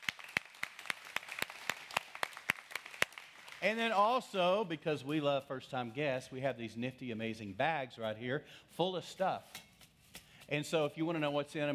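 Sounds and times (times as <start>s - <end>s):
audience hand clap welcoming first-time guests: 0.0s - 4.0s
speech: 3.6s - 9.6s, 10.5s - 11.7s.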